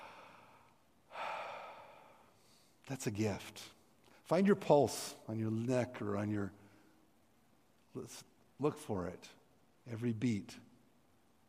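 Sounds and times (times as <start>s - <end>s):
deep breath in: 0.0s - 2.8s
speech: 2.9s - 6.6s, 8.0s - 10.7s.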